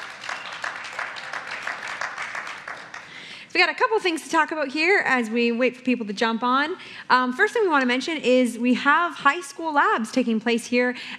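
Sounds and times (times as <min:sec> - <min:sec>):
studio audience clapping: 0:00.0 - 0:03.4
speech: 0:03.6 - 0:11.1.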